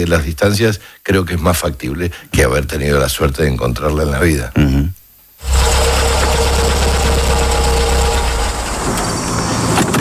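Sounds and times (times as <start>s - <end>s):
speech: 0.0s - 4.8s
car engine running inside moving car: 5.4s - 10.0s.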